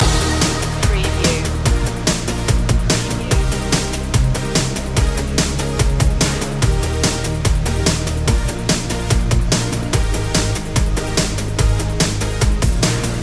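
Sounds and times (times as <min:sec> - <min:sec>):
fresh energetic music loop: 0:00.0 - 0:13.2.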